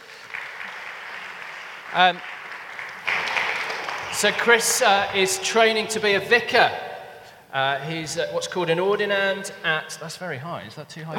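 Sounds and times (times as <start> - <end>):
audience clapping to welcome a guest: 0.0 - 7.3
speech: 1.9 - 2.3, 4.2 - 6.9, 7.5 - 11.1.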